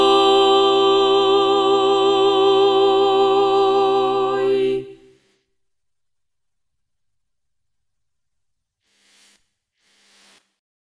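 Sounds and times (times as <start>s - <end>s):
contraltos singing: 0.0s - 5.3s.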